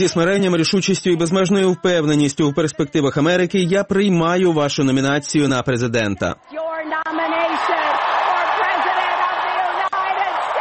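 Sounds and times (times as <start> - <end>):
speech: 0.0 - 7.3
cheering voices: 6.4 - 10.6
audience applause: 7.1 - 10.6.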